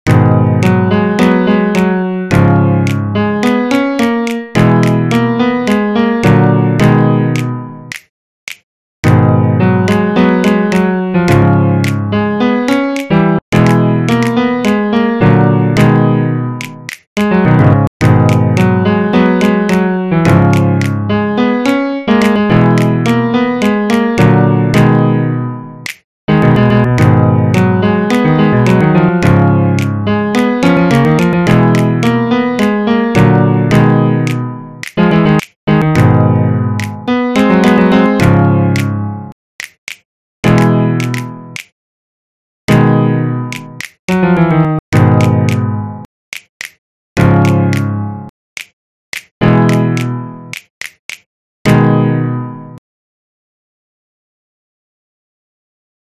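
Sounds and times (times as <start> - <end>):
piano: 0.1 - 8.0, 9.0 - 39.4, 40.4 - 41.7, 42.7 - 46.1, 47.2 - 48.3, 49.4 - 50.6, 51.7 - 52.8.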